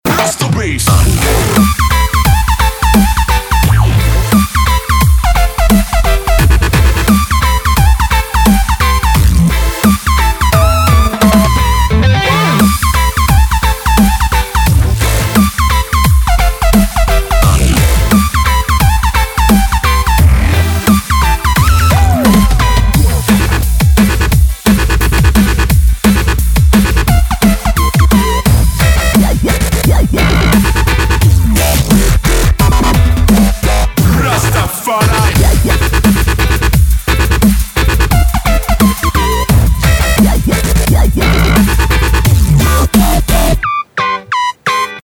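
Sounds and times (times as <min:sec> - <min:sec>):
rasta reggae bass: 0:00.1 - 0:43.8.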